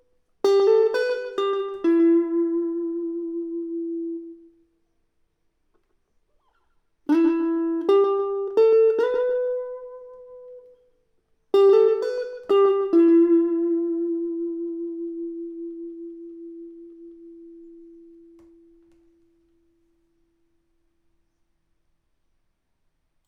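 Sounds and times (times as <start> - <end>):
electric guitar: 0.4 - 4.6, 6.4 - 10.8, 11.5 - 19.2.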